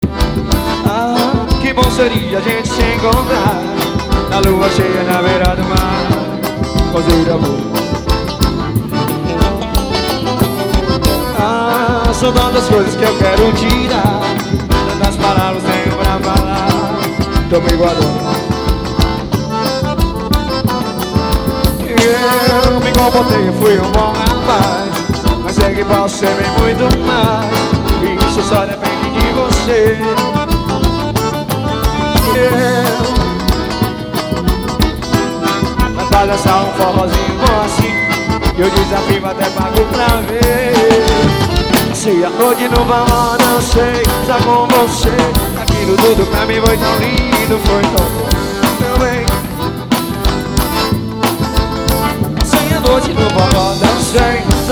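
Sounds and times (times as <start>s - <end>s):
forró xote music: 0.0s - 54.7s.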